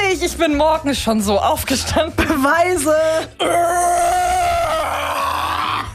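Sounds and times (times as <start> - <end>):
speech: 0.2 - 4.2
woman attempting a metal scream: 3.4 - 5.9.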